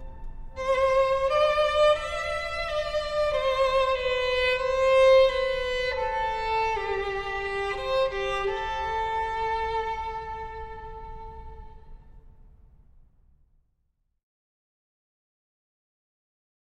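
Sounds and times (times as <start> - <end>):
duet of cello: 0.0 - 12.2
string quartet: 0.0 - 12.2.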